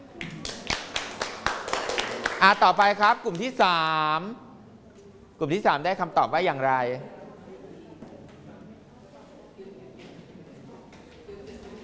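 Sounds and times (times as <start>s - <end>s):
classmates clapping in unison for a friend in a classroom: 0.2s - 3.6s
speech: 2.4s - 4.4s, 5.4s - 7.2s.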